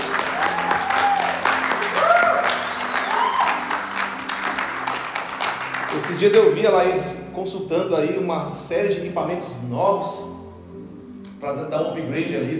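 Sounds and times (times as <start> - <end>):
applause: 0.0 - 6.5
speech: 6.0 - 10.4, 11.4 - 12.5.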